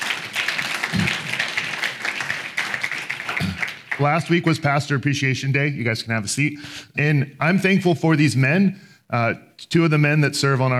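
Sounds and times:
audience applause: 0:00.0 - 0:04.4
speech: 0:04.0 - 0:10.7.

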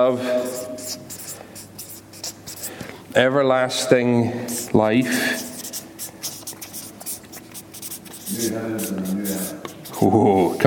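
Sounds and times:
speech: 0:00.0 - 0:01.2, 0:03.2 - 0:05.5, 0:08.4 - 0:10.6
pen scratching on paper while handwriting: 0:00.5 - 0:02.7, 0:04.5 - 0:10.1.

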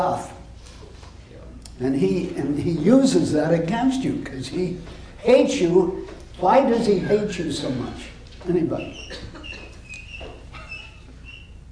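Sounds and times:
quiet hum: 0:00.0 - 0:11.7
speech: 0:01.8 - 0:09.4
small bird chirping in a room: 0:08.9 - 0:11.6.

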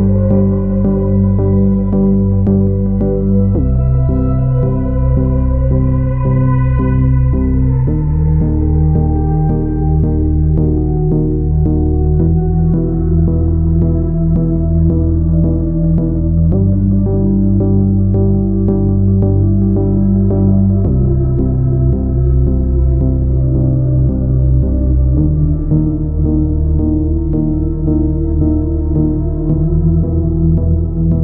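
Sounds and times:
vintage synthesizer: 0:00.0 - 0:31.2.

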